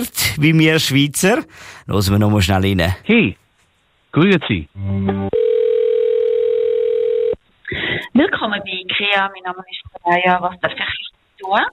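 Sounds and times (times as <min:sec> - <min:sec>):
speech: 0:00.0 - 0:03.4, 0:04.1 - 0:05.4, 0:08.2 - 0:11.7
telephone ringing tone: 0:05.3 - 0:07.4.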